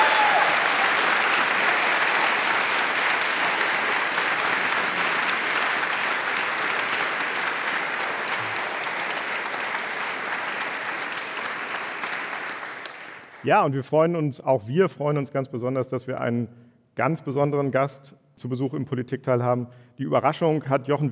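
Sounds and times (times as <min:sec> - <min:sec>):
audience applause for the guest: 0:00.0 - 0:13.5
speech: 0:13.4 - 0:21.0.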